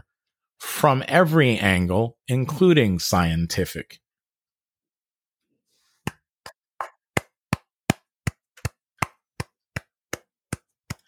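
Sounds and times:
speech: 0.8 - 4.0
hands clapping: 7.1 - 11.0.

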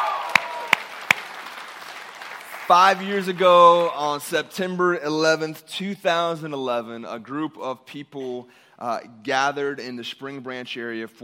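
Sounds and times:
audience applause: 0.0 - 4.2
sharp loud claps: 0.0 - 4.4
speech: 2.7 - 11.2.

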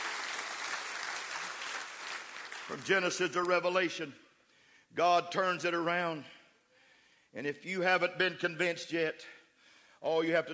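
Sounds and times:
audience clapping: 0.0 - 3.7
speech: 2.7 - 4.3, 4.9 - 6.4, 7.3 - 9.4, 10.0 - 10.5.

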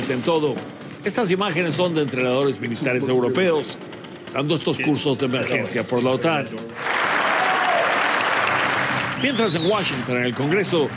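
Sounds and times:
speech: 0.1 - 6.9, 9.2 - 10.9
standing ovation applause: 6.8 - 10.9.

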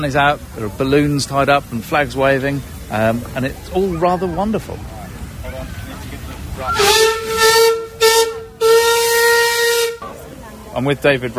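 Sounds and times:
speech: 0.0 - 4.9, 10.8 - 11.3
steam hissing: 0.0 - 11.3
steam locomotive whistle: 6.6 - 10.1.

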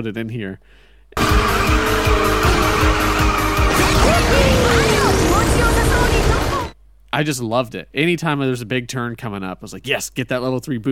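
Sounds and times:
speech: 0.0 - 2.4, 7.1 - 10.8
video game kart engine drone: 1.2 - 6.8
video game kart racing speed boost whoosh: 1.5 - 6.8.

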